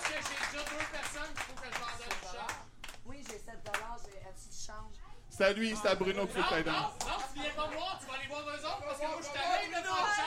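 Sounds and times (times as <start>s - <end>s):
audience clapping: 0.0s - 4.2s
speech: 0.6s - 2.7s, 3.3s - 10.2s
voices shouting and chattering: 5.4s - 10.2s.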